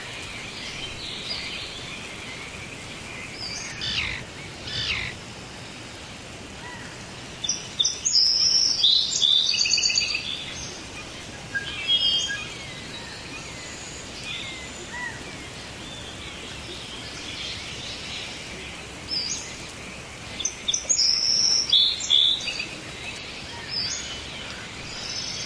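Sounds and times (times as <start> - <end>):
tropical rainforest rain: 0.0 - 25.4.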